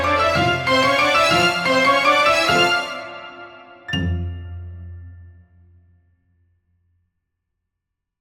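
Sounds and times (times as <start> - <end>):
background music: 0.0 - 5.9.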